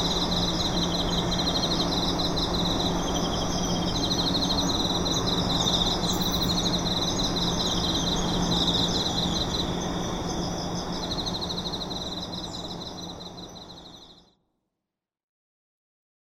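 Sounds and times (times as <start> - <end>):
insects chirping: 0.0 - 14.2.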